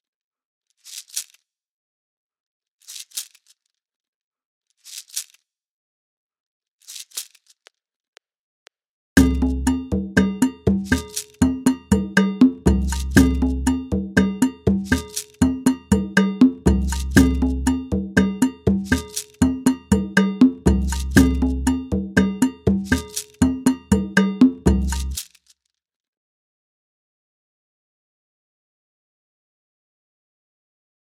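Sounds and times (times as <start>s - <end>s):
Latin American Mozambique percussion rhythm: 9.2s - 25.2s.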